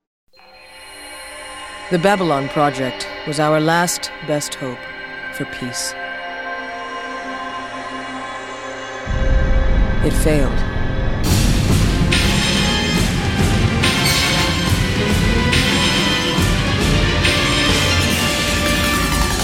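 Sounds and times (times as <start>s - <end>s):
person narrating: 1.9s - 6.0s, 10.0s - 10.7s
main titles music: 9.1s - 19.4s.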